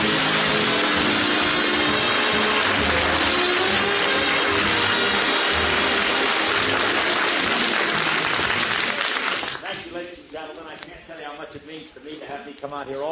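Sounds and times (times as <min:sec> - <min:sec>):
audience applause: 0:00.0 - 0:09.8
speech: 0:12.8 - 0:13.1.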